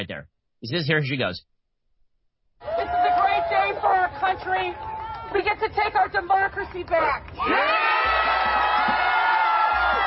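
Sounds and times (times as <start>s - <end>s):
speech: 0.0s - 1.5s, 3.8s - 8.0s
whoops: 2.6s - 3.8s, 7.4s - 10.0s
crowd cheering in the streets at a rally: 2.6s - 10.0s.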